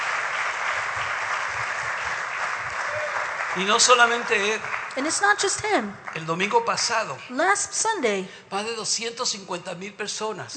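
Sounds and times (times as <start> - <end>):
audience applause: 0.0 - 7.0
speech: 3.6 - 10.5.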